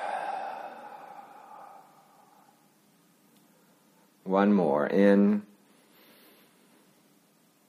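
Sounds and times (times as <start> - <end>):
person exhaling through the mouth during a guided breathing exercise: 0.0 - 2.7
speech: 4.3 - 5.5.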